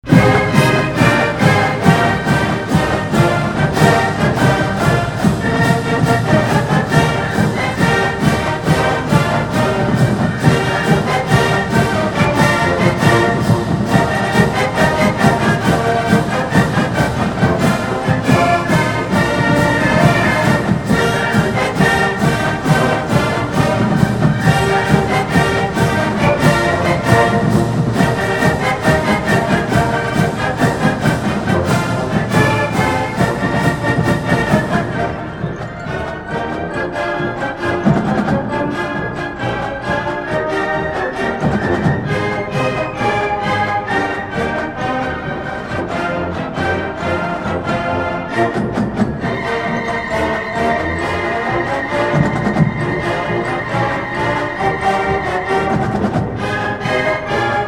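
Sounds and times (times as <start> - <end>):
pep band playing a march: 0.0 - 57.6.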